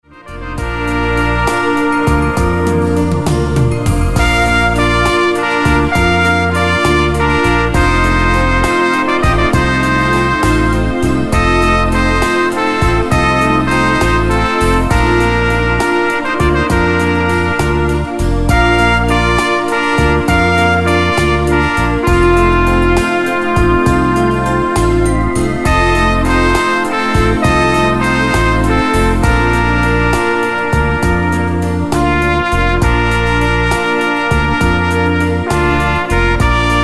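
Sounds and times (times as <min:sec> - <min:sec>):
instrumental piece: 0:00.0 - 0:36.8.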